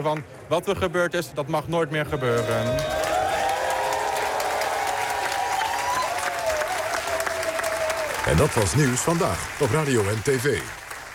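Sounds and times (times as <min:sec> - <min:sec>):
speech: 0:00.0 - 0:03.0, 0:08.3 - 0:10.8
applause at a street gathering: 0:02.2 - 0:11.1.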